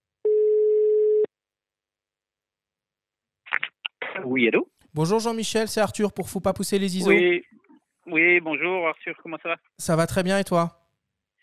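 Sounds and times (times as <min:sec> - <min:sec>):
telephone ringing tone on outgoing call: 0:00.2 - 0:01.3
speech: 0:04.2 - 0:10.8.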